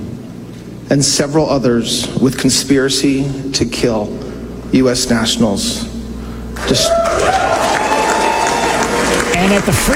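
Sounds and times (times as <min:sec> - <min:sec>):
speech: 0:00.9 - 0:05.9, 0:06.6 - 0:07.6, 0:09.4 - 0:09.9
crowd at the Freedom Tower in Miami cheering and applauding: 0:06.6 - 0:09.9.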